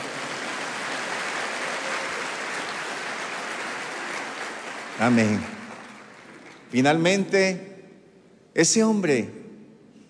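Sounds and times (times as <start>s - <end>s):
audience applause: 0.0s - 7.0s
speech: 5.0s - 5.6s, 6.7s - 7.7s, 8.6s - 9.4s.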